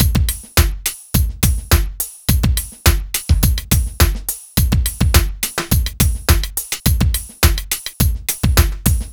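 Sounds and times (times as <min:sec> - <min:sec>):
eclectic electronica drum beat: 0:00.0 - 0:09.1.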